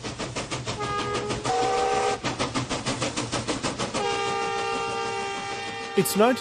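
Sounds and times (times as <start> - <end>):
steam train pulling up to the platform: 0.0 - 6.3
steam train whistle: 0.8 - 2.2, 4.0 - 6.3.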